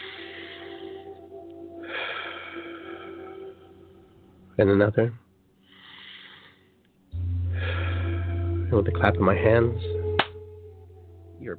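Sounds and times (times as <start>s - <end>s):
deep breathing in and out: 0.0s - 1.2s, 1.8s - 4.2s, 5.6s - 8.7s
speech: 4.6s - 5.2s, 8.7s - 10.0s.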